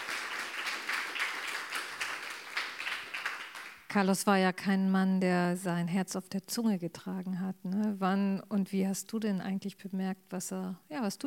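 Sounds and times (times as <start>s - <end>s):
audience applause: 0.0s - 3.9s
speech: 3.9s - 11.2s.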